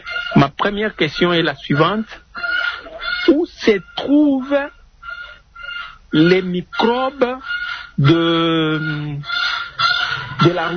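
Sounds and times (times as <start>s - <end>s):
hen squawking loudly: 0.0s - 10.7s
speech: 0.4s - 2.2s, 3.3s - 4.8s, 6.1s - 9.4s, 10.4s - 10.7s.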